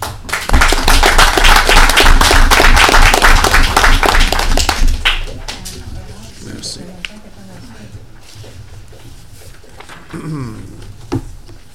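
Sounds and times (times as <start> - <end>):
council meeting applause: 0.0 - 5.8
speech: 10.1 - 10.6.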